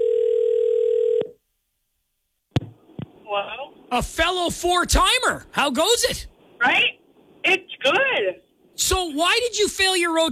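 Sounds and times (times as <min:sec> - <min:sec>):
outgoing call's telephone ringback tone: 0:00.0 - 0:01.4
speech: 0:03.4 - 0:06.9, 0:07.5 - 0:10.2.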